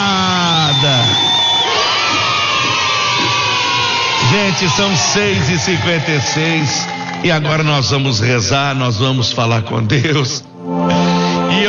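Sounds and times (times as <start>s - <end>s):
audience applause: 0.0s - 8.5s
shouting voices: 1.4s - 7.2s
speech: 4.6s - 11.0s.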